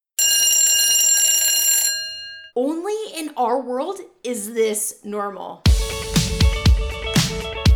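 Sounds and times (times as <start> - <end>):
loud electric school bell ringing: 0.2 - 2.6
speech: 2.6 - 7.6.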